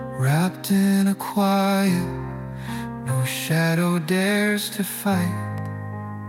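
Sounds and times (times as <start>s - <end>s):
lullaby singing: 0.2s - 2.3s, 3.1s - 5.7s.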